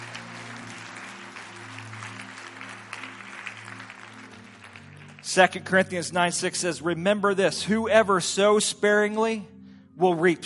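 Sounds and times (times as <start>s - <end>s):
audience clapping hands: 0.0s - 6.5s
speech: 5.3s - 10.4s.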